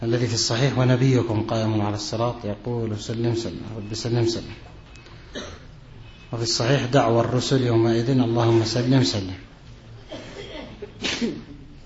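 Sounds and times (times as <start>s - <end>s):
speech: 0.0s - 5.6s, 6.3s - 9.5s, 11.0s - 11.5s
sneeze: 10.1s - 11.6s.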